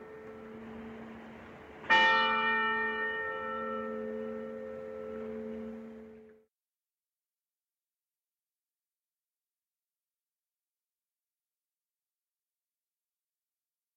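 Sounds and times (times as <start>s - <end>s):
church bell: 0.0s - 6.5s.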